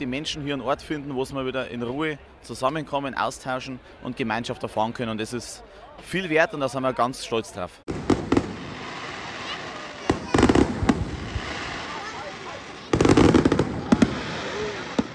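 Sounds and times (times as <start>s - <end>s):
speech: 0.0s - 8.1s
fireworks exploding: 7.9s - 15.1s.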